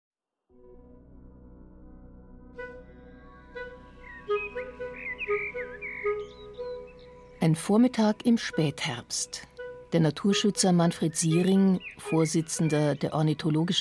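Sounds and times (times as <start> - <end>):
male blackbird singing: 3.6 - 9.0, 9.6 - 13.8
speech: 7.4 - 13.8.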